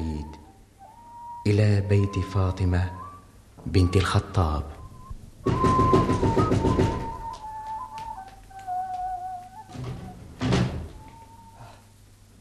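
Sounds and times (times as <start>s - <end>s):
faint sustained humming tones: 0.0s - 12.4s
speech: 1.5s - 3.0s, 3.6s - 4.8s
rapid loud knocking on a door: 5.4s - 7.3s.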